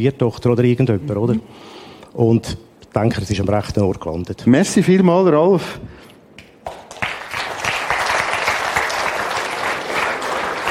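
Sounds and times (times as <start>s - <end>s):
speech: 0.0s - 6.0s
applause: 6.6s - 10.6s.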